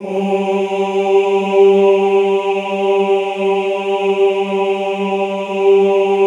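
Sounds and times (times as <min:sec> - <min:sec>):
classical choir singing ooh: 0:00.0 - 0:06.2.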